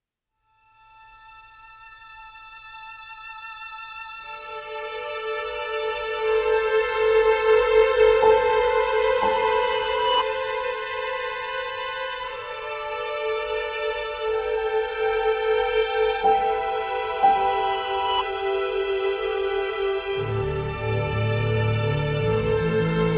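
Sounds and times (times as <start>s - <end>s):
uncertain ambient music: 4.2s - 23.1s.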